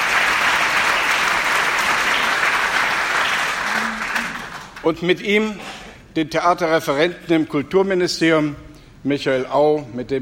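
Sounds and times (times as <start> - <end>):
audience applause greeting a state secretary at a formal gathering: 0.0 - 4.8
speech: 4.8 - 10.2.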